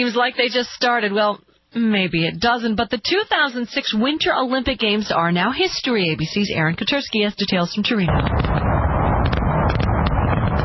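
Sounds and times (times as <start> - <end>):
speech: 0.0 - 8.5
fireworks at the 2006 Winter Olympics closing ceremony in Turin: 8.1 - 10.6.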